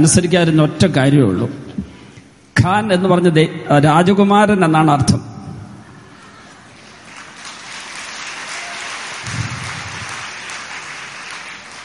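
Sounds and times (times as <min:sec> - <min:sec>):
speech: 0:00.0 - 0:01.6, 0:02.6 - 0:05.3
audience applause: 0:06.5 - 0:11.8.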